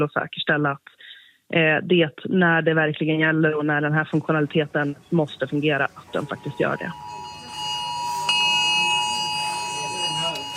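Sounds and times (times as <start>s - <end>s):
speech: 0.0s - 7.2s
phone emergency alert alarm tone: 6.1s - 10.5s.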